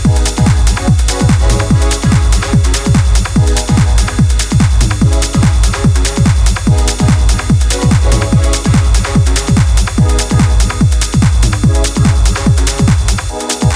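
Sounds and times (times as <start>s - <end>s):
electronic techno music: 0.0s - 13.7s.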